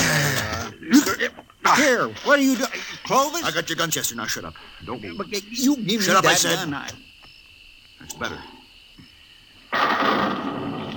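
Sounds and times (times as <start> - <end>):
speech: 0.9 - 7.1, 8.0 - 8.6, 9.7 - 10.5
thunder: 9.7 - 10.9.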